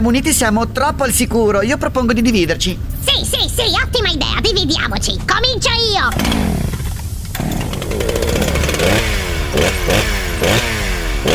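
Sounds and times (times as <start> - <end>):
speech: 0.0 - 6.7
chainsaw revving: 6.1 - 11.3.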